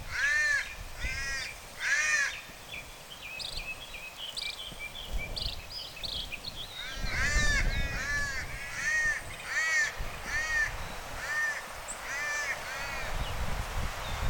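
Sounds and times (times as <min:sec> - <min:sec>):
small birds chirping: 0:00.0 - 0:14.2
Cuban palm crow cawing: 0:00.1 - 0:02.4, 0:06.8 - 0:13.2.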